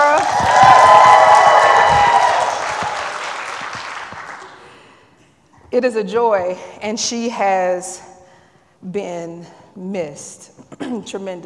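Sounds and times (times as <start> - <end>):
audience cheering and screaming: 0.0 - 4.1
applause: 0.0 - 4.7
speech: 5.8 - 8.1, 8.8 - 11.4.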